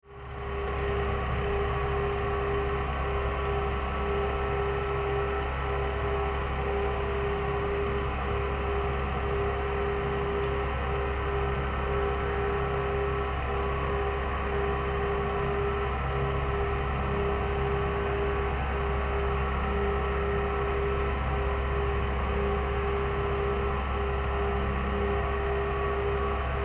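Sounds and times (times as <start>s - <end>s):
industrial factory hum: 0.1s - 26.6s.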